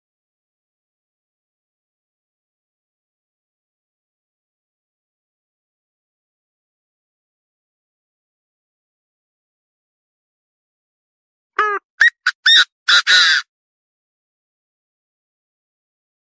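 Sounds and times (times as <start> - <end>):
partridge calling: 11.6 - 13.4.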